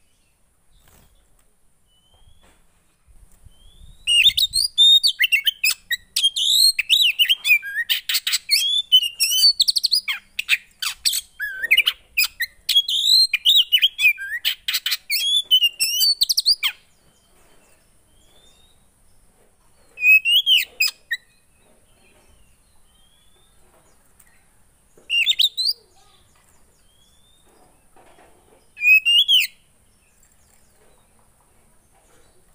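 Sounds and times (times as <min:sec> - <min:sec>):
Oriental magpie-robin singing: 0:03.5 - 0:17.0, 0:19.9 - 0:27.6, 0:28.6 - 0:30.3.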